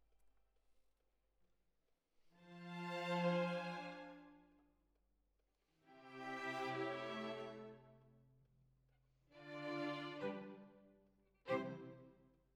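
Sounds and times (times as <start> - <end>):
violins: 2.4 - 4.3, 5.9 - 7.9, 9.3 - 10.8, 11.4 - 12.2.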